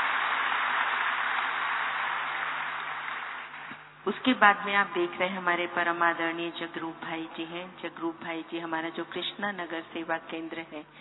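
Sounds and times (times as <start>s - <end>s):
audience applause: 0.0s - 3.8s
speech: 4.0s - 11.0s.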